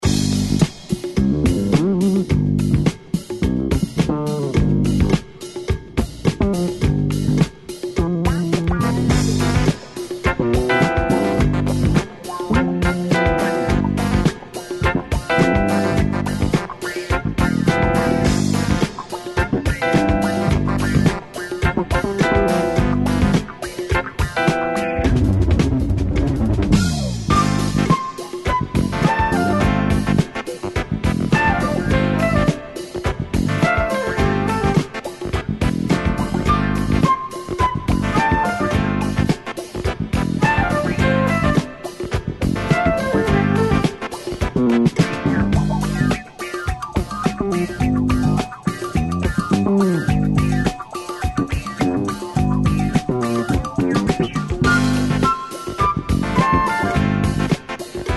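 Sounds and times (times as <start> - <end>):
funk music: 0.0 - 58.1.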